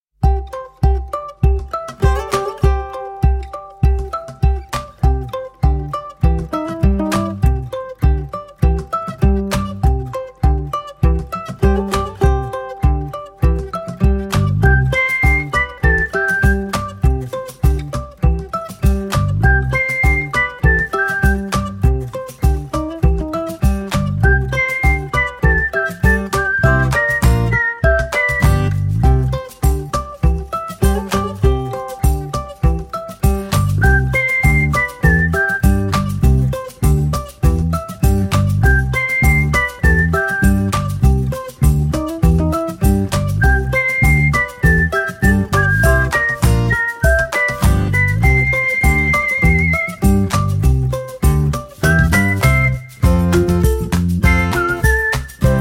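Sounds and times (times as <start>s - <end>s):
whistled melody: 0.3s - 55.5s.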